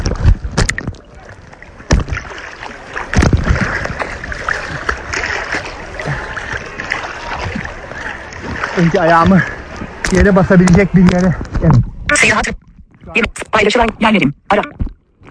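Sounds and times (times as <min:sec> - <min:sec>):
person swimming in sea water, splashing: 0:00.0 - 0:10.0
speech: 0:08.8 - 0:14.7.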